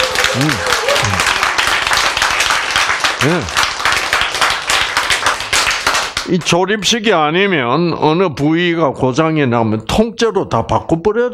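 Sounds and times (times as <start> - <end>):
audience clapping applause: 0.0 - 6.9
speech: 0.4 - 0.7, 3.2 - 3.6, 6.3 - 11.3.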